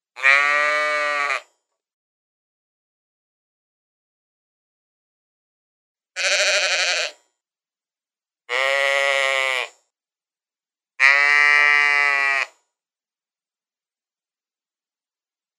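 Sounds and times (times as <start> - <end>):
sheep giving wavering bleats: 0.2 - 1.5, 6.2 - 7.2, 8.5 - 9.8, 11.0 - 12.6.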